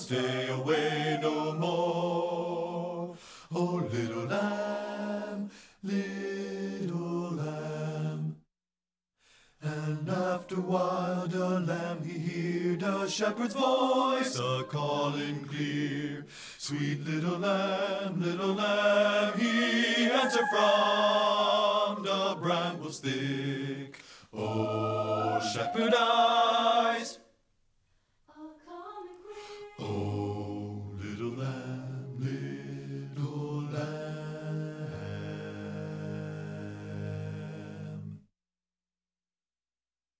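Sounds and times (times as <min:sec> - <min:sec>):
choral bass voices: 0:00.0 - 0:08.4, 0:09.6 - 0:27.2, 0:28.4 - 0:38.3.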